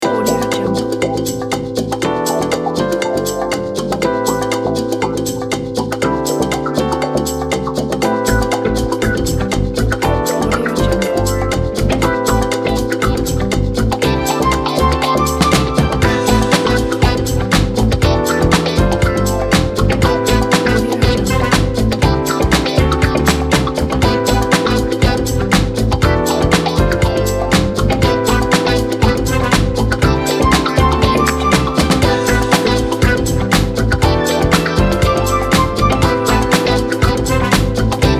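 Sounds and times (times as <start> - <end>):
modern fashion funk soul background music: 0.0 - 38.1.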